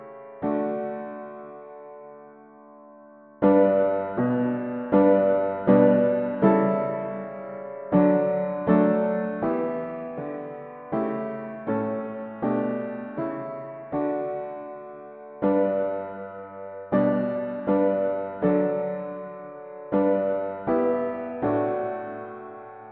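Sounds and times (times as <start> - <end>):
mono piano playing hymns: 0.0 - 22.9.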